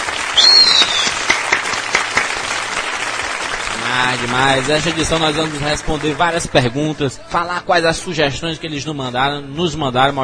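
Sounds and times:
group applauding: 0.0 - 6.9
high whistle or cheer: 0.3 - 1.4
speech: 4.0 - 10.2.

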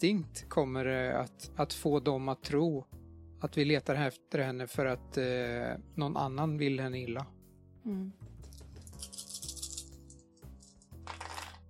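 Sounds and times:
speech: 0.0 - 8.3
dice rattling and clattering: 8.8 - 11.6.

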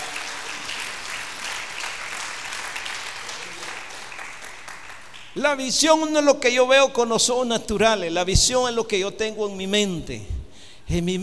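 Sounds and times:
large crowd applauding: 0.0 - 5.4
speech: 5.4 - 11.2.

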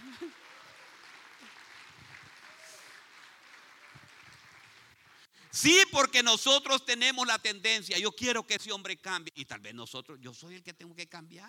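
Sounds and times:
audience applause: 0.0 - 5.2
speech: 5.5 - 11.4.

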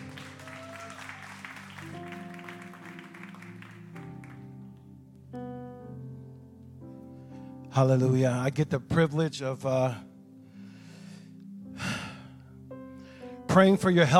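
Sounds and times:
audience applauding to welcome a pastor at a church service: 0.0 - 4.8
sustained keyboard chords: 0.0 - 14.1
speech: 7.8 - 10.1, 13.6 - 14.1.

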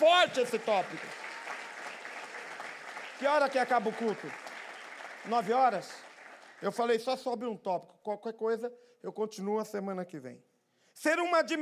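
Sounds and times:
speech: 0.0 - 1.3, 3.2 - 4.5, 5.2 - 6.0, 6.6 - 11.5
applause for Jesus: 0.0 - 7.3.

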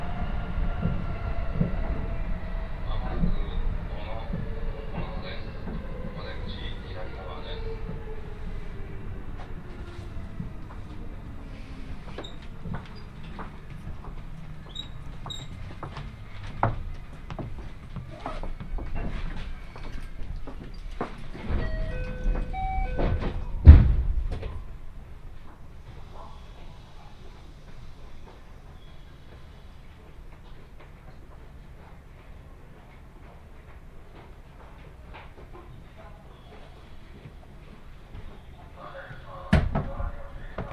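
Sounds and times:
train on the Kosei Line rumbling: 0.0 - 40.7
loud thump: 23.0 - 24.6.

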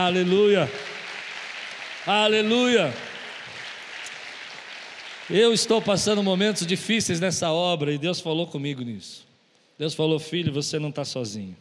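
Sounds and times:
speech: 0.0 - 0.9, 2.0 - 3.1, 5.3 - 11.5
audience applauding: 0.0 - 6.9.

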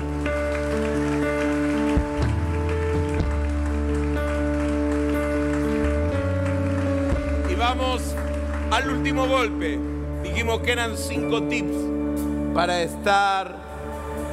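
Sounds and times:
audience applause: 0.0 - 10.1
speech: 7.7 - 11.9, 12.6 - 13.6.

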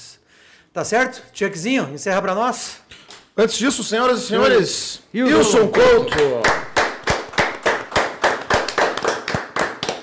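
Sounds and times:
speech: 0.7 - 6.7
round of applause, hand clapping: 5.5 - 10.0.

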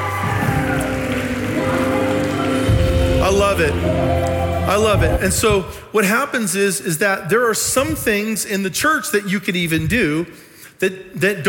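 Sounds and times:
crowd applauding: 0.0 - 5.1
speech: 3.5 - 11.4.

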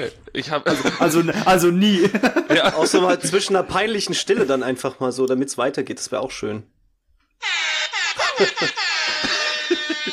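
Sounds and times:
speech: 0.0 - 6.8, 8.4 - 9.2
laughter: 0.7 - 3.7, 7.4 - 10.1
air horn sound effect: 7.4 - 10.1.

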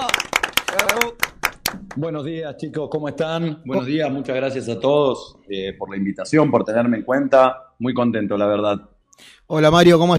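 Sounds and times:
audience applause: 0.0 - 1.9
speech: 2.0 - 10.1.

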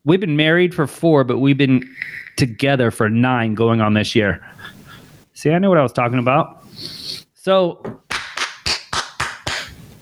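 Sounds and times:
speech: 0.0 - 4.8, 5.4 - 8.0
single pair of hands clapping: 8.1 - 9.9.

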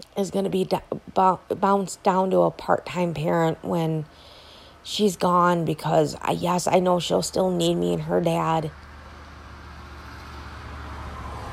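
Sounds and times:
speech: 0.0 - 8.8
loud vehicle passing by: 7.8 - 11.5.

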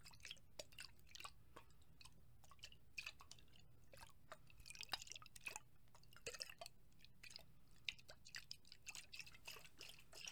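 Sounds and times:
water sloshing and shaking in a glass: 0.1 - 10.3.

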